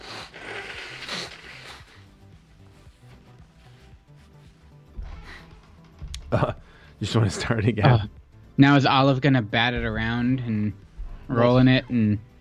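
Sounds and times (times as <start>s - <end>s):
person blowing nose: 0.0s - 4.4s
speech: 6.3s - 12.3s.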